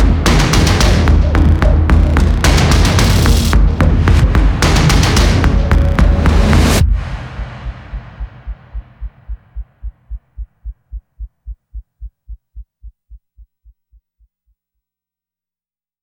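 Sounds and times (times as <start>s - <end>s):
rising music without choir: 0.0s - 10.4s.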